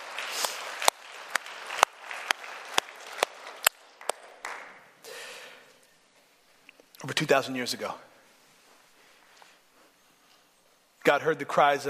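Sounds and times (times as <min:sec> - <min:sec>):
audience clapping: 0:00.0 - 0:05.0
speech: 0:07.0 - 0:08.1, 0:11.1 - 0:11.8.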